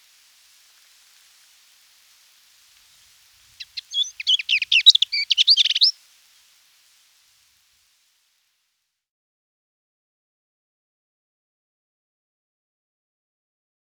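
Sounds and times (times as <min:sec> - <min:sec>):
steppe lesser whitethroat singing chattering warbled phrases: 0:03.6 - 0:05.9.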